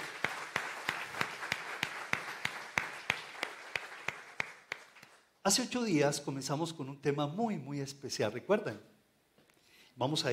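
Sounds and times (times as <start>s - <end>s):
audience applause: 0.0s - 5.2s
speech: 5.5s - 8.9s, 10.0s - 10.3s.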